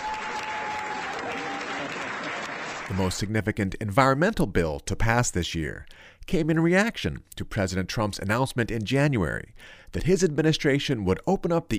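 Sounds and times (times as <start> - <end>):
applause in the Maryland General Assembly chamber: 0.0 - 3.2
speech: 2.9 - 11.7.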